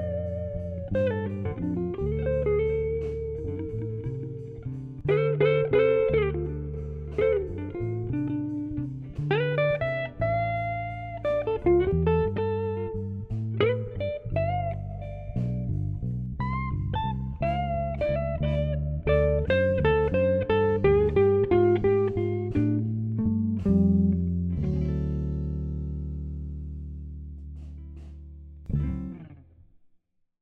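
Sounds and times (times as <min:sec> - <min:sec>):
slow blues play-along music: 0:00.0 - 0:29.4.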